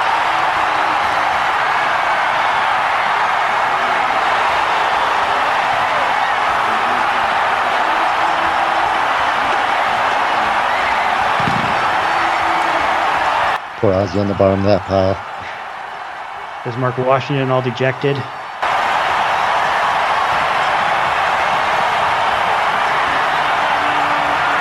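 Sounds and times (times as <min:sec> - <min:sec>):
stadium crowd cheering after a field goal: 0:00.0 - 0:24.6
speech: 0:13.8 - 0:15.3, 0:16.6 - 0:18.4.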